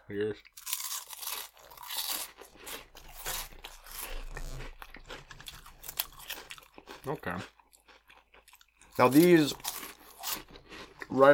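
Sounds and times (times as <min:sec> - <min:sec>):
speech: 0:00.1 - 0:00.7, 0:07.0 - 0:07.6, 0:09.0 - 0:09.6, 0:11.1 - 0:11.3
crunching on hot fries snacks: 0:00.5 - 0:11.3.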